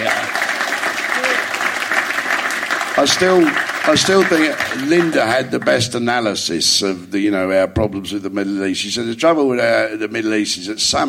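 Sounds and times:
crowd clapping: 0.0 - 6.3
speech: 3.0 - 11.0.

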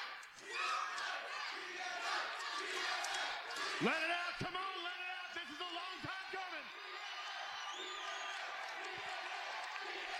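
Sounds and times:
crowd cheering at a live TNA Impact wrestling show: 0.0 - 10.1
speech: 3.8 - 4.1.

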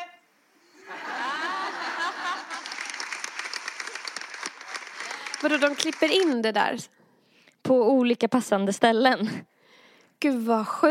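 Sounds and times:
crowd bursting into rippling laughter: 0.8 - 5.4
loud sustained applause: 2.0 - 6.4
speech: 5.4 - 7.0, 7.6 - 9.5, 10.2 - 10.9.

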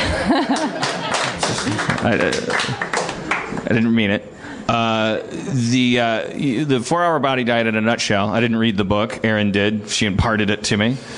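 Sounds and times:
people chuckling and laughing: 0.0 - 3.3
scattered uneven hand clapping from a few people: 0.5 - 3.7
speech: 2.0 - 2.8, 3.6 - 11.1.

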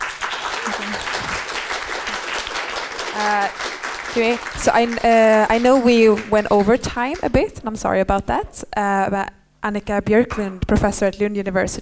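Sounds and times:
audience applause for panelists: 0.0 - 7.3
speech: 0.7 - 1.5, 3.2 - 11.7.

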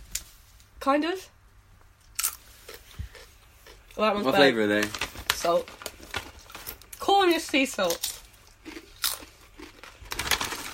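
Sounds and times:
speech: 0.8 - 1.4, 4.0 - 5.8, 7.1 - 8.1
crunching on crisps: 2.1 - 10.7.

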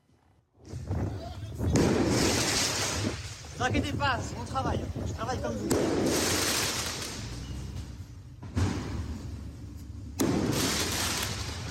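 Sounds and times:
firework mortar bang fired at firefighters in Paris: 0.6 - 7.4, 8.4 - 9.4, 10.2 - 11.6
people's voices and commotion: 0.6 - 7.8
speech: 3.6 - 6.6.

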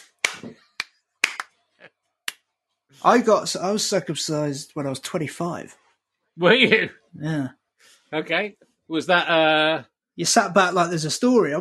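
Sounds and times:
hands clapping to swat a fly: 0.0 - 1.6
speech: 3.0 - 5.8, 6.4 - 11.5.

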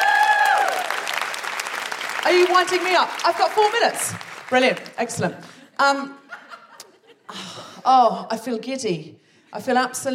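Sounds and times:
audience round of applause: 0.0 - 5.0
speech: 2.2 - 6.2, 7.3 - 10.1
laughter: 6.2 - 7.6.

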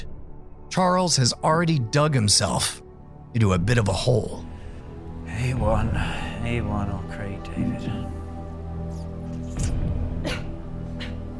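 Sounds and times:
speech: 0.7 - 4.5, 5.4 - 8.2
person coughing: 10.2 - 11.2.

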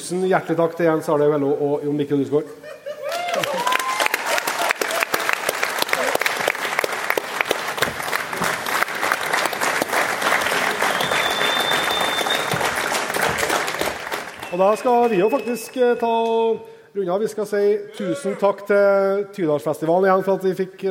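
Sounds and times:
speech: 0.1 - 2.8, 14.6 - 20.8
audience applause at a music festival: 3.0 - 15.8
brief whistle-like tone: 10.9 - 12.5, 14.4 - 16.3.

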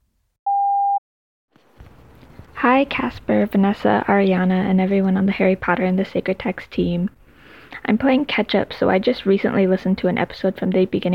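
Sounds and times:
voicemail beep: 0.5 - 1.0
speech: 2.7 - 11.1.

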